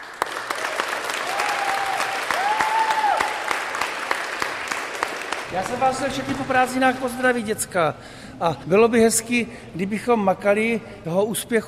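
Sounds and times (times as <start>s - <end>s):
audience applauding: 0.0s - 6.2s
speech: 5.5s - 11.6s.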